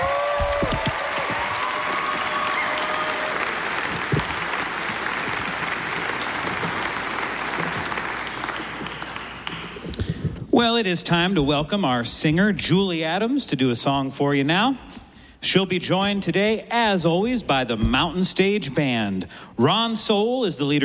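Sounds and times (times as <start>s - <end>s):
live audience applauding a musician after a performance: 0.0s - 10.1s
speech: 10.6s - 20.8s.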